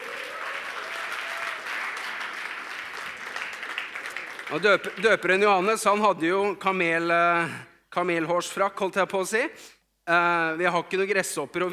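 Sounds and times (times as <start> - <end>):
audience applause: 0.0 - 5.4
speech: 4.5 - 11.7.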